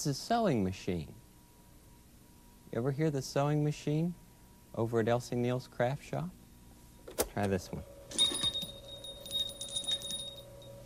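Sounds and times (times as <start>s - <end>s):
speech: 0.0s - 1.2s, 2.7s - 6.4s, 7.4s - 8.4s
shop door bell jingling: 8.1s - 10.8s.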